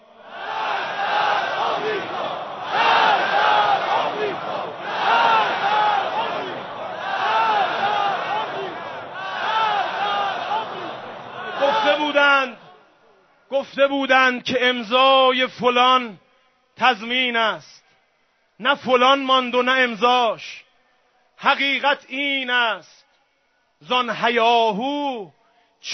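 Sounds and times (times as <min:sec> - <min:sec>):
large crowd chanting a political slogan: 0:00.0 - 0:12.8
speech: 0:13.8 - 0:16.2, 0:16.8 - 0:17.7, 0:18.6 - 0:20.6, 0:21.4 - 0:23.0, 0:23.8 - 0:25.9.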